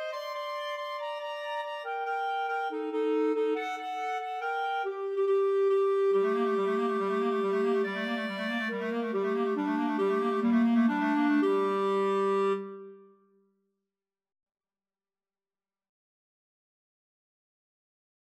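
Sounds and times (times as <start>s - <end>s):
symphony clarinet part for karaoke: 0.0s - 13.1s.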